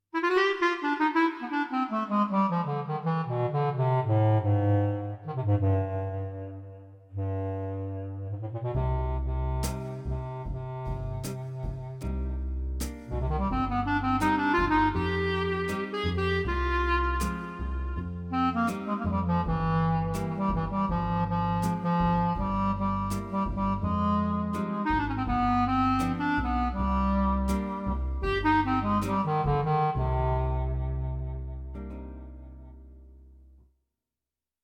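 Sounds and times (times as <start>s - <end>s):
clarinet: 0.0s - 33.1s.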